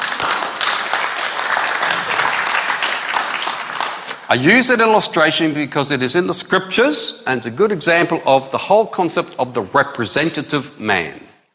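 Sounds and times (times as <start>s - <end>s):
audience applause: 0.0s - 4.3s
speech: 4.3s - 11.3s.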